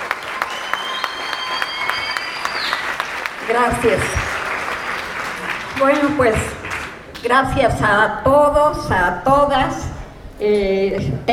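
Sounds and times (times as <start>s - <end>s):
audience applause: 0.0s - 7.2s
speech: 3.5s - 4.2s, 5.8s - 6.6s, 7.2s - 11.3s.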